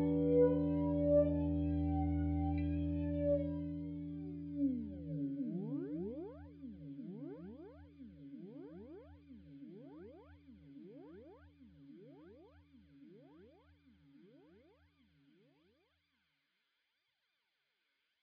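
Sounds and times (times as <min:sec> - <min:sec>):
Fender Jazzmaster electric guitar: 0:00.0 - 0:09.0.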